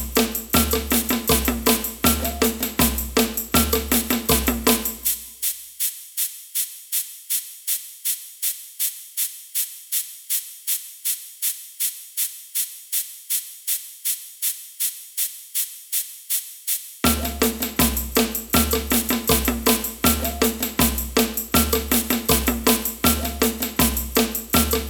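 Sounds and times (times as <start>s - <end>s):
samba band playing: 0.0s - 5.2s, 17.1s - 24.8s
ganza shaker in samba band: 0.0s - 24.8s.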